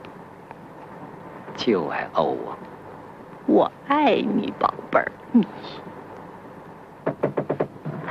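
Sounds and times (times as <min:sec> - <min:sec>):
speech: 0:01.6 - 0:02.7, 0:03.5 - 0:05.9
knocking on a door: 0:07.0 - 0:07.9.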